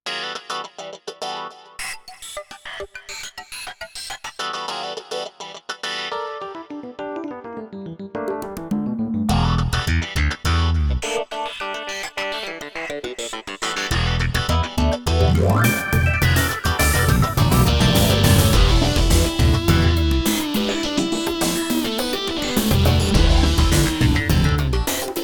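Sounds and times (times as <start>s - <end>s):
funk music: 6.1s - 25.2s.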